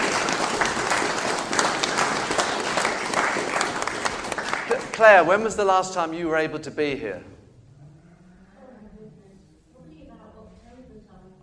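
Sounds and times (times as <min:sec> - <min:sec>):
audience clapping: 0:00.0 - 0:06.4
speech: 0:05.0 - 0:07.3.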